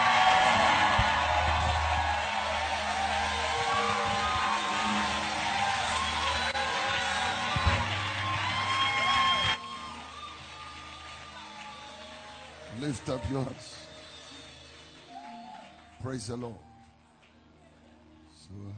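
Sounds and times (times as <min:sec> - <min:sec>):
whoops: 0:00.0 - 0:12.7, 0:15.1 - 0:15.8
church congregation screaming and cheering: 0:00.0 - 0:15.9
speech: 0:13.0 - 0:13.9, 0:16.0 - 0:16.7, 0:18.5 - 0:18.7.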